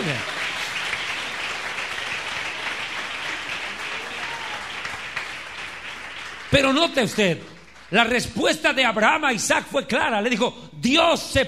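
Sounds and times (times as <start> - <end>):
audience applauding: 0.0 - 8.4
speech: 6.5 - 11.4.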